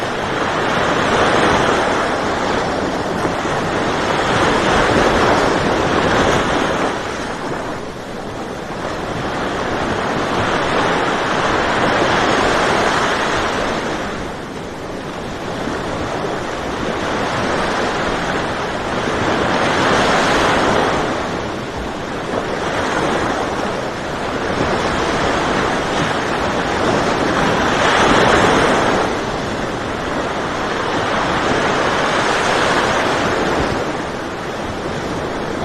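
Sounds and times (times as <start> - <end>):
low ocean sound: 0.0 - 35.6.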